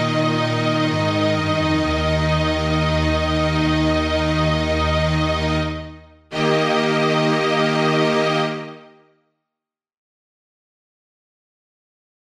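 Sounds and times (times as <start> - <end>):
canon for strings: 0.0 - 9.0.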